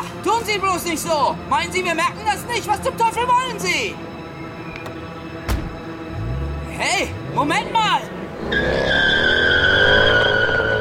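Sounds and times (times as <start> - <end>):
speech: 0.4 - 4.2, 6.8 - 9.3
tires squealing as a black Mercedes car speeds off: 6.2 - 10.7.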